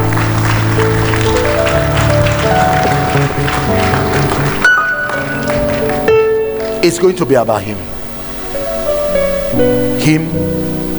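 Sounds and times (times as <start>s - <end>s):
audience clapping: 0.0s - 7.7s
speech: 6.8s - 8.0s, 9.5s - 10.8s.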